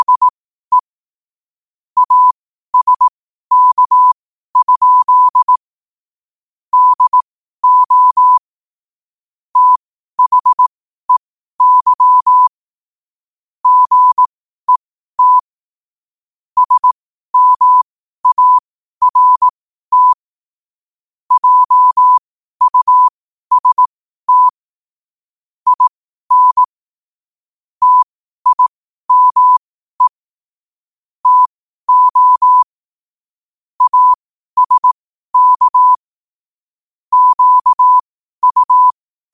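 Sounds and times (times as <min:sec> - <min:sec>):
morse code at 5 wpm: 0:00.0 - 0:00.9, 0:02.0 - 0:05.6, 0:06.7 - 0:08.4, 0:09.6 - 0:12.5, 0:13.6 - 0:15.4, 0:16.6 - 0:20.2, 0:21.3 - 0:24.5, 0:25.7 - 0:26.7, 0:27.8 - 0:30.2, 0:31.2 - 0:32.7, 0:33.8 - 0:36.0, 0:37.1 - 0:39.3.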